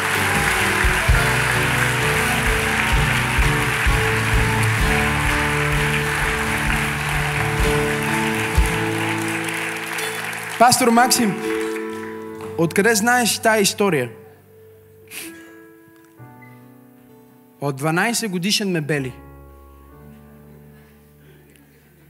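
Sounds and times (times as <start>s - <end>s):
audience applauding: 0.0s - 13.4s
speech: 10.6s - 11.5s, 12.6s - 14.2s, 17.6s - 19.3s.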